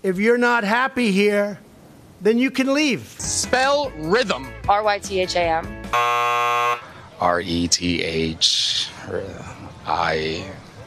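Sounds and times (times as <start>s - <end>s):
speech: 0.0s - 1.6s, 2.2s - 10.6s
buzzer sounding: 5.9s - 6.9s.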